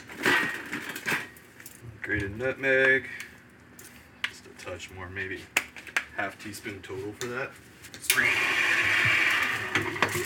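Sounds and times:
speech: 0:02.1 - 0:03.3, 0:04.7 - 0:05.6, 0:06.2 - 0:09.2
blender whirring: 0:08.1 - 0:10.2.

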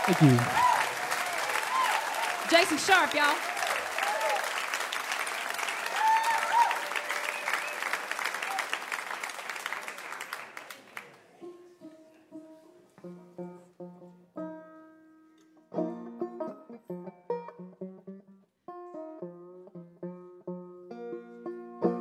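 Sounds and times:
crowd applause: 0:00.0 - 0:11.5
speech: 0:00.1 - 0:00.6, 0:02.5 - 0:03.5
bright plucked banjo notes: 0:11.4 - 0:21.9.

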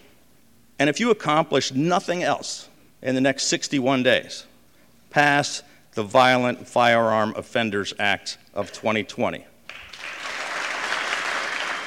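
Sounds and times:
speech: 0:00.8 - 0:04.5, 0:05.1 - 0:09.5
applause from state legislators: 0:09.7 - 0:11.8.

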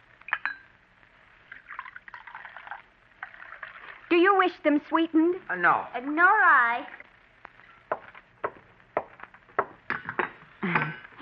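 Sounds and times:
cup clinking: 0:00.3 - 0:00.7, 0:09.6 - 0:10.4
coffee pouring from an urn spigot: 0:01.5 - 0:04.1
speech: 0:04.1 - 0:07.0.

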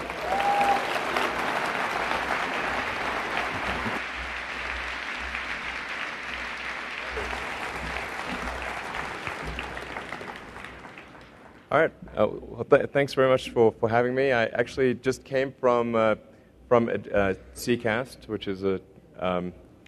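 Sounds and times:
audience applause: 0:00.0 - 0:11.8
speech: 0:11.8 - 0:19.6.

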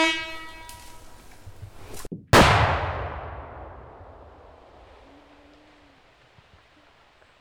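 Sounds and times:
reedy horn-like tone: 0:00.0 - 0:01.0
explosive blast breaching a beaver dam: 0:02.3 - 0:05.0.

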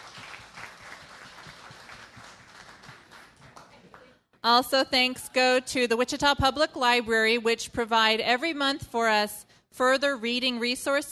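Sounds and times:
crowd clapping: 0:00.0 - 0:04.2
speech: 0:04.4 - 0:11.0.

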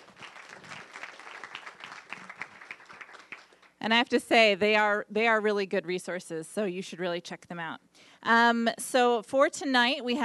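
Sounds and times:
audience applause: 0:00.0 - 0:03.7
speech: 0:03.8 - 0:10.2.

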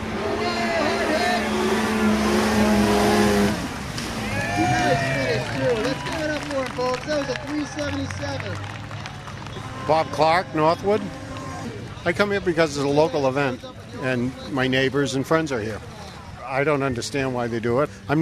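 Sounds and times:
snowmobile engine roaring as it skims across open water on a pond: 0:00.0 - 0:08.6, 0:09.4 - 0:12.8
speech: 0:10.0 - 0:11.2, 0:12.0 - 0:15.9, 0:16.5 - 0:18.2.

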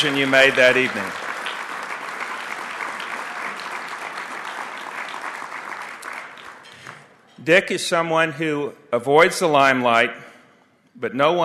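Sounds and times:
speech: 0:00.0 - 0:01.2, 0:07.4 - 0:10.3, 0:11.0 - 0:11.4
audience applause: 0:00.0 - 0:07.1.

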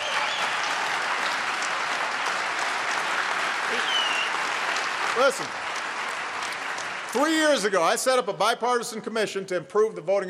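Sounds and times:
audience applause: 0:00.0 - 0:08.2
speech: 0:03.7 - 0:03.9, 0:05.2 - 0:05.6, 0:07.1 - 0:10.2.

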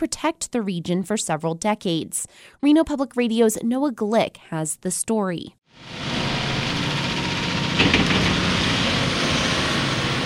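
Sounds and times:
speech: 0:00.0 - 0:06.2
excavator digging a new canal: 0:05.8 - 0:10.2.

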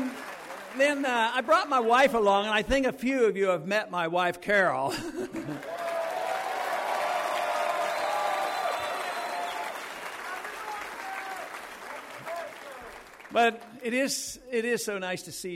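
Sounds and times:
audience applause: 0:00.0 - 0:01.9, 0:05.4 - 0:13.8
speech: 0:00.8 - 0:05.8, 0:13.3 - 0:15.5
laughter: 0:04.9 - 0:06.0.

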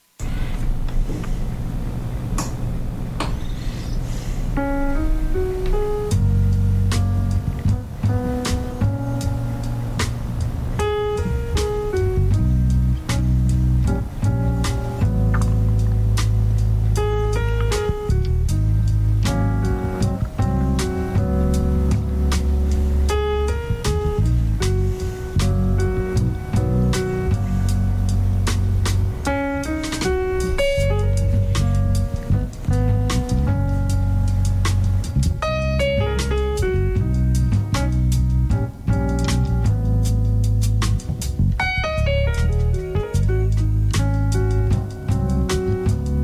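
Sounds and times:
jazz music: 0:00.0 - 0:46.2.

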